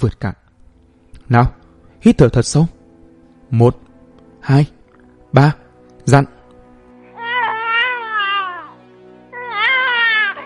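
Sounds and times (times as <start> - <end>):
speech: 0.0 - 0.4, 1.3 - 2.8, 3.5 - 3.8, 4.4 - 6.4
newborn baby crying: 7.1 - 10.4.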